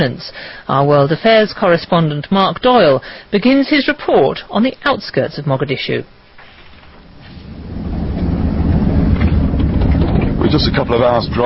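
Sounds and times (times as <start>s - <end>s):
speech: 0.0s - 6.2s, 10.5s - 11.4s
convoy of United Nations armoured vehicles driving outside Mogadishu, Somalia: 7.3s - 11.4s.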